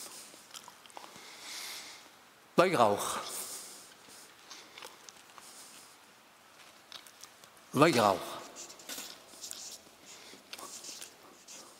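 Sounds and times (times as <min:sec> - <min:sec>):
speech: 0:02.6 - 0:03.3, 0:07.8 - 0:08.3
scratchy handwriting strokes: 0:08.5 - 0:11.7.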